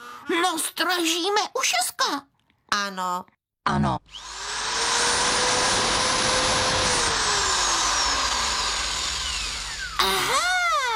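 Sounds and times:
speech: 0.3s - 4.6s
electric drill running: 4.1s - 10.5s.

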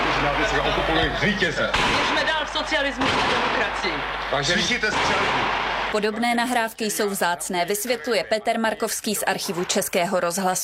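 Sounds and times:
speech: 1.0s - 10.6s
gunfire in archival 1968 radio recording: 1.7s - 6.1s.

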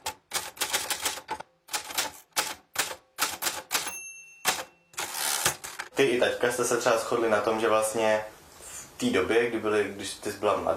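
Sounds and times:
typing on a great-grandfather's old typewriter: 0.0s - 5.9s
speech: 6.0s - 8.4s, 9.0s - 10.7s.

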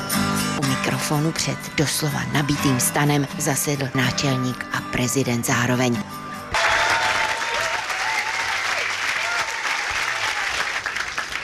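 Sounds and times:
speech: 1.1s - 6.2s
audience applause: 6.5s - 11.4s.

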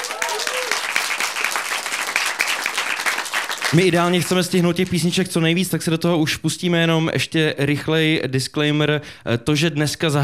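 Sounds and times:
whoops and cheers: 0.0s - 1.0s
crowd applauding: 0.0s - 5.0s
speech: 3.7s - 10.2s.

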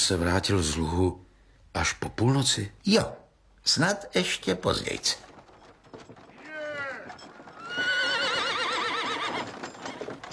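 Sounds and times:
speech: 0.1s - 5.3s
hooves clopping: 3.7s - 10.3s
horses whinnying: 5.2s - 10.3s.

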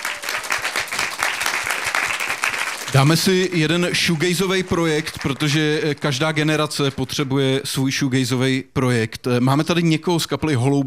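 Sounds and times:
concert crowd applauding a band: 0.0s - 7.3s
speech: 3.0s - 10.8s.

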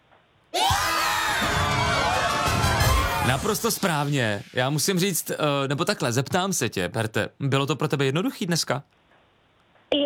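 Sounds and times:
shouts and whoops: 0.5s - 3.5s
tennis crowd applause and cheering at the end of the match: 0.6s - 4.2s
speech: 3.3s - 9.0s.

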